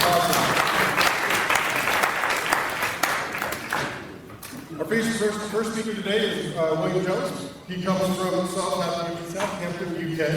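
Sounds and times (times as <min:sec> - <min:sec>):
audience applauding: 0:00.0 - 0:04.1
speech: 0:04.9 - 0:10.3.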